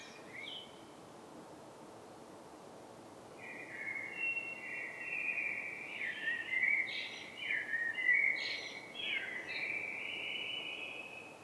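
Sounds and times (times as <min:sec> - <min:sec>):
common blackbird song: 0:00.0 - 0:00.8, 0:03.4 - 0:11.4.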